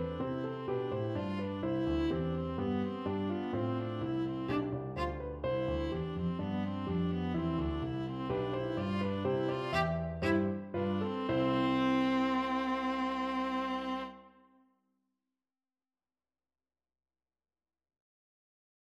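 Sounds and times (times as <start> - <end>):
viola: 0.0 - 14.5.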